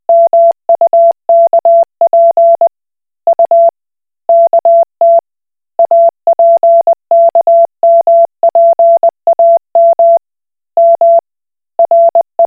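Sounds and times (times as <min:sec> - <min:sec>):
Koch method Morse code beeps: 0:00.1 - 0:02.7, 0:04.3 - 0:05.2, 0:05.8 - 0:10.2, 0:10.8 - 0:11.2, 0:11.8 - 0:12.4.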